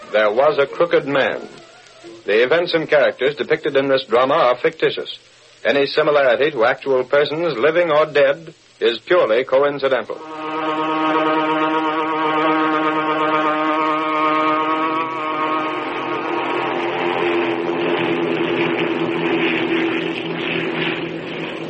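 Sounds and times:
transport plane propeller-engine drone: 0.0 - 2.4, 10.2 - 21.6
speech: 0.1 - 10.4.

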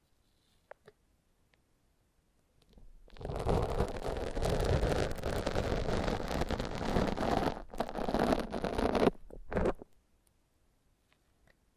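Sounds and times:
foam being massaged: 3.2 - 9.8.

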